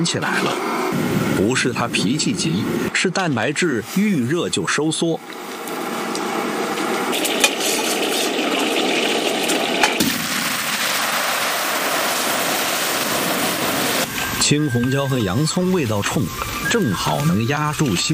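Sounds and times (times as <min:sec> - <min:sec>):
speech: 0:00.0 - 0:05.6, 0:14.5 - 0:18.1
boiling water bubbling as squid is blanched: 0:03.6 - 0:18.1.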